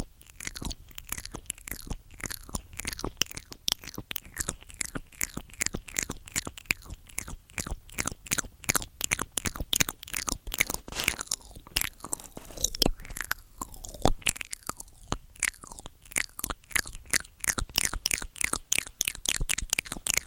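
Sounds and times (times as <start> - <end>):
ear eating wet crunchy mouth clicks and smacks: 0.1 - 20.2.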